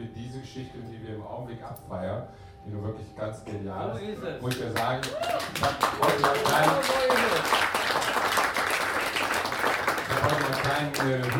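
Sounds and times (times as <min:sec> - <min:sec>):
speech: 0:00.3 - 0:08.0, 0:10.8 - 0:11.3
applause: 0:04.5 - 0:11.3.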